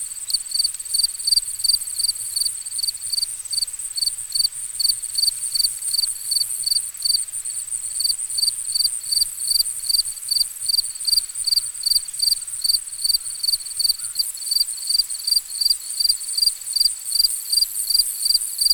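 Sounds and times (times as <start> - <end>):
distant crickets chirping: 0.1 - 18.7.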